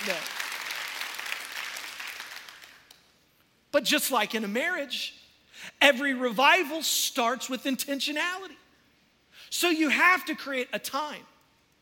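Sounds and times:
audience clapping hands: 0.0 - 3.0
speech: 0.1 - 0.4, 3.8 - 8.6, 9.5 - 11.3.

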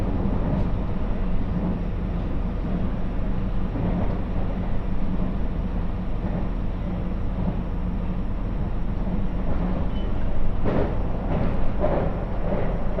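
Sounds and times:
Muroran Main Line train rumble and hum: 0.0 - 12.9
train squeals: 9.6 - 10.6.

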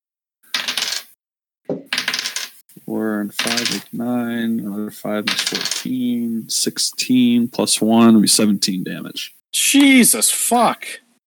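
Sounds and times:
dice clattering and rattling across a hard surface: 0.5 - 2.6, 3.3 - 3.9, 5.2 - 6.0
speech: 2.9 - 11.0.

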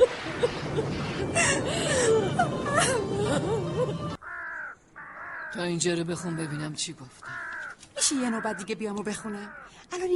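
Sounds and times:
woman crying, wailing and whimpering: 0.4 - 4.2
speech: 5.6 - 7.4, 8.0 - 10.1.

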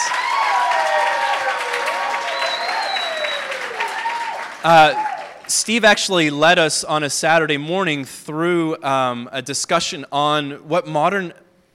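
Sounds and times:
audience applause: 0.0 - 5.6
speech: 4.6 - 11.7.

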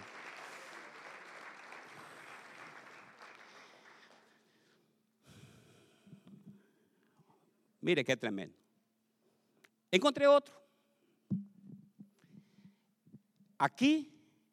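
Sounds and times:
audience applause: 0.0 - 4.5
speech: 7.8 - 8.6, 9.9 - 10.6, 13.6 - 14.2.

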